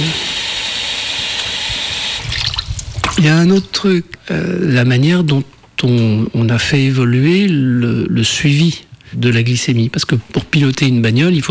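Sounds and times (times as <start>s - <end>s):
washing mushrooms in water: 0.0s - 3.8s
speech: 3.2s - 11.4s.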